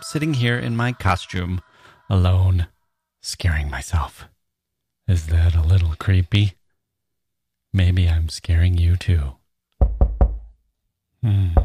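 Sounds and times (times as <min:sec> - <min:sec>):
speech: 0:00.1 - 0:04.4, 0:05.1 - 0:06.6, 0:07.7 - 0:09.4, 0:11.2 - 0:11.6
knocking on a door as a Halloween sound effect: 0:09.8 - 0:10.5.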